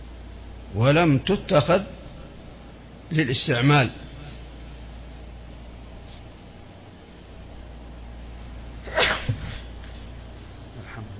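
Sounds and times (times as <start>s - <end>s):
steady hiss: 0.0s - 11.1s
speech: 0.7s - 2.0s, 3.1s - 4.0s
person sneezing: 8.8s - 9.9s.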